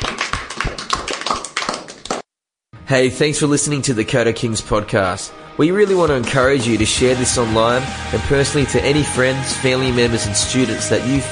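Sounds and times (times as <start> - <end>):
group clapping to end session: 0.0 - 2.2
speech: 2.9 - 11.3.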